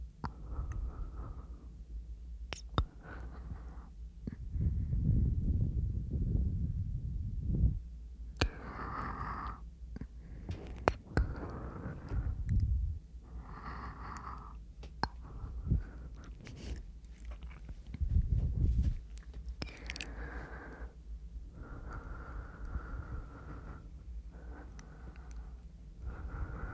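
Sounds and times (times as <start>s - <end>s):
quiet steady hum: 0.0s - 26.7s
breathing: 0.3s - 1.8s, 2.8s - 5.3s, 8.4s - 12.6s, 13.2s - 16.9s, 19.6s - 26.7s
soft wet mouth clicks and smacks: 2.5s - 3.0s, 15.0s - 15.2s, 17.2s - 18.0s, 19.2s - 20.2s.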